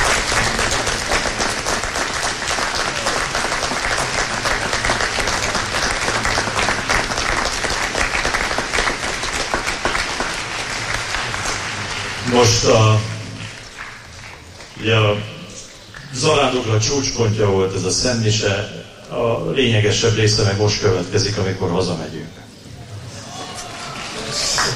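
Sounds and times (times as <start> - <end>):
large audience applause: 0.0 - 14.9, 22.8 - 24.7
speech: 12.4 - 13.1, 14.8 - 15.3, 16.2 - 22.4.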